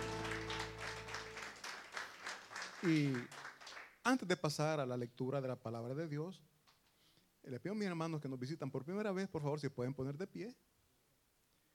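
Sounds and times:
audience applause: 0:00.0 - 0:03.9
speech: 0:02.8 - 0:03.4, 0:04.0 - 0:06.5, 0:07.4 - 0:10.6.

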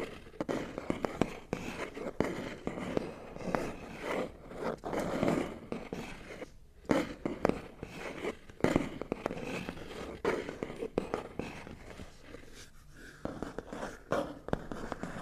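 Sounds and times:
scratching and rubbing on cardboard boxes: 0:00.0 - 0:15.2.

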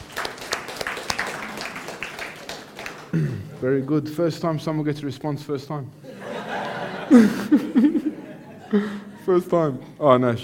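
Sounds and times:
audience clapping: 0:00.0 - 0:03.7
speech: 0:03.1 - 0:06.0, 0:07.1 - 0:10.4
laughter: 0:06.0 - 0:09.7.

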